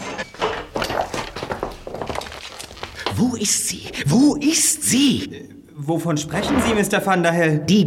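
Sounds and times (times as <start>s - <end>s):
footsteps approaching behind cellar door: 0.2s - 4.2s
speech: 3.4s - 7.8s.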